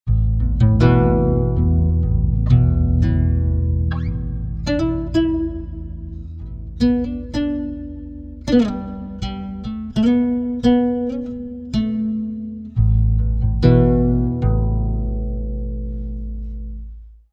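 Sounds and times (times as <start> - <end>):
pitch-shifted guitar: 0.1 - 17.0.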